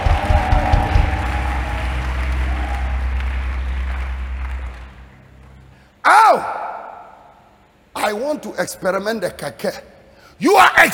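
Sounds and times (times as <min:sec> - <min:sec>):
crowd clapping: 0:00.0 - 0:05.8
low droning hum: 0:00.0 - 0:06.0
speech: 0:08.1 - 0:10.9.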